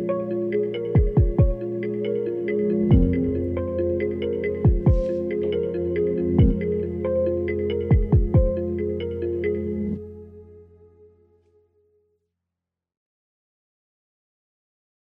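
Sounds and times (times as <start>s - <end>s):
kalimba: 0.0s - 10.0s.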